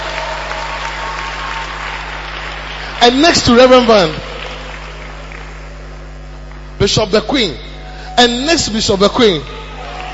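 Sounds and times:
audience clapping: 0.0s - 6.7s, 9.7s - 10.1s
low steady hum: 0.0s - 10.1s
speech: 3.0s - 4.2s, 6.8s - 9.6s.

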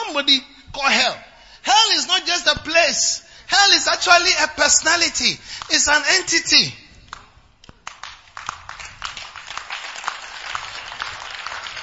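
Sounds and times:
speech: 0.1s - 6.8s
audience clapping: 7.1s - 11.8s.

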